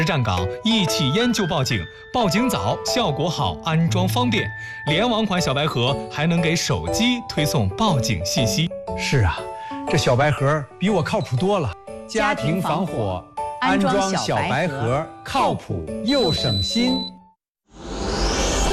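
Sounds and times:
people talking: 0:00.0 - 0:17.1
smoke alarm beeping: 0:16.1 - 0:17.2.

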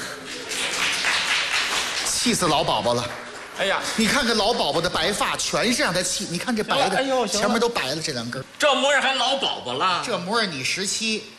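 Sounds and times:
audience applause: 0:00.0 - 0:04.8
speech: 0:02.2 - 0:11.3.

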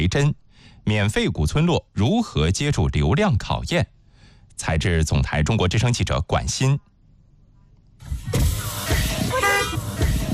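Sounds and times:
speech: 0:00.0 - 0:06.9
car horn toot: 0:08.9 - 0:10.3.

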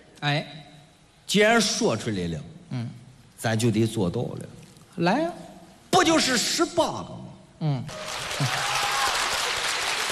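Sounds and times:
speech: 0:00.2 - 0:00.7, 0:01.3 - 0:08.7
audience applause at a live comedy performance: 0:07.9 - 0:10.1.

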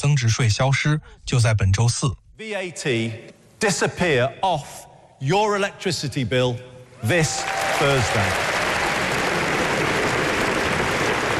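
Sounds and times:
speech: 0:00.0 - 0:08.6
crowd applauding: 0:07.0 - 0:11.3.

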